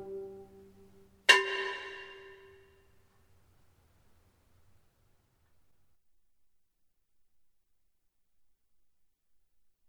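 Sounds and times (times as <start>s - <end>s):
ancient hymn: 0.0s - 2.8s.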